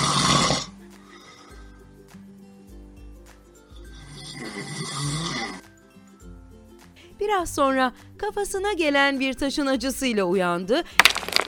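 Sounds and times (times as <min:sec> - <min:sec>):
sleeping lion snoring: 0:00.0 - 0:01.6, 0:03.9 - 0:05.6
speech: 0:07.3 - 0:11.4.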